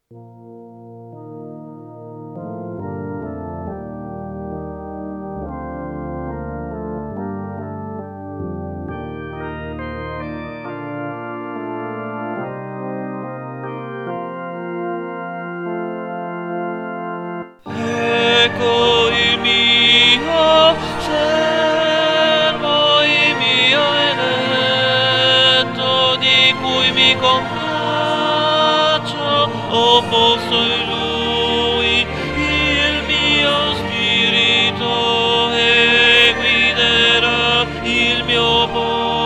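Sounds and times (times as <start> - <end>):
tenor singing an aria: 17.6 - 39.2.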